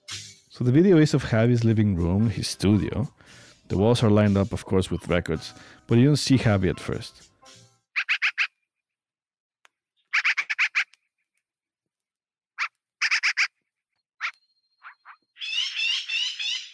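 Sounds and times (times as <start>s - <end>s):
speech: 0.6s - 7.6s
American crow calls: 8.0s - 8.6s, 10.1s - 11.0s, 12.6s - 13.5s, 14.2s - 16.7s.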